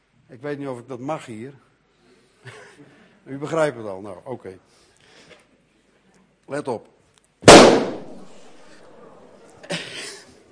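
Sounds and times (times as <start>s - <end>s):
speech: 0.3s - 1.7s, 2.4s - 4.9s, 6.5s - 7.9s
party balloon bursting: 7.5s - 8.8s.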